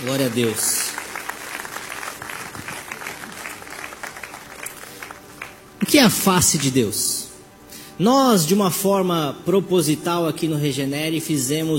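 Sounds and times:
speech: 0:00.0 - 0:00.8, 0:05.9 - 0:07.2, 0:08.0 - 0:11.7
audience clapping: 0:00.0 - 0:06.8.

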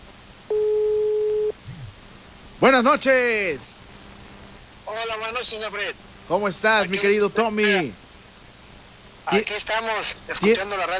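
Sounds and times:
telephone tone while dialling a call-in line: 0:00.5 - 0:01.6
speech: 0:02.6 - 0:03.8, 0:05.3 - 0:08.0, 0:09.3 - 0:10.9.

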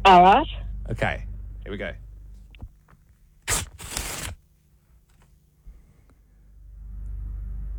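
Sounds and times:
low rumble: 0:00.0 - 0:02.8, 0:06.3 - 0:07.7
speech: 0:00.1 - 0:02.0
paper tearing: 0:03.4 - 0:04.4.

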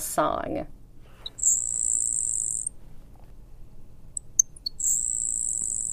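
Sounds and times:
grasshopper sparrow insect-like buzzy song: 0:01.0 - 0:02.8, 0:04.1 - 0:05.9.

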